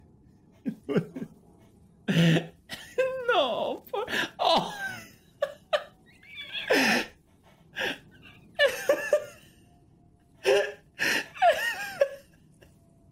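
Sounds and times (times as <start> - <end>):
person laughing: 0.6 - 1.4, 2.1 - 7.1, 7.8 - 9.5, 10.4 - 12.3.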